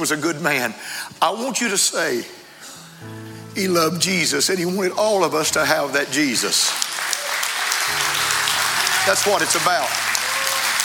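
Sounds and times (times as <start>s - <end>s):
speech: 0.0s - 2.4s, 3.0s - 7.2s, 9.0s - 10.1s
people clapping their hands: 6.2s - 10.8s.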